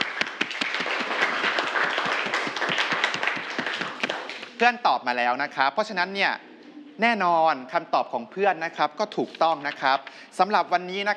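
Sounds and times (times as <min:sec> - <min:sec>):
students clapping for a classmate: 0:00.0 - 0:04.6
speech: 0:04.6 - 0:11.1.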